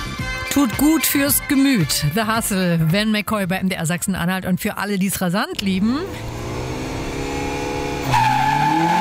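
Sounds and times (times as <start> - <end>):
speech: 0.6 - 6.4
rallycross car engines droning at a motorsport arena: 5.6 - 9.0
rallycross car tires squealing: 6.1 - 9.0.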